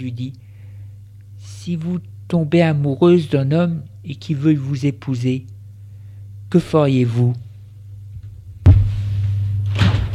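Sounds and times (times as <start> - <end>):
speech: 0.0 - 0.5, 1.4 - 5.5, 6.5 - 7.4
door bursting open: 9.7 - 10.1.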